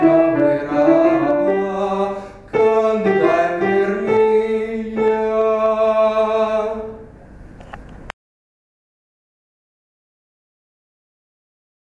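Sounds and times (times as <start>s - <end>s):
mezzo-soprano singing: 0.0s - 7.0s.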